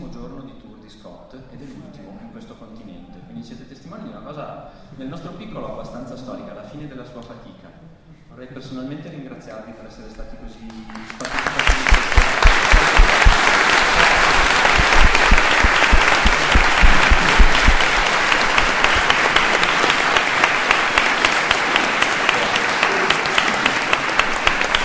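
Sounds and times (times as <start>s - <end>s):
speech: 3.4s - 12.9s
audience applause for a comics author at his final event: 10.9s - 24.8s.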